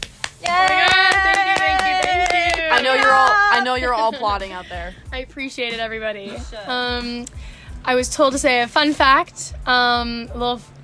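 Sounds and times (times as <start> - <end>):
audience applause: 0.4 - 3.5
speech: 3.6 - 10.8.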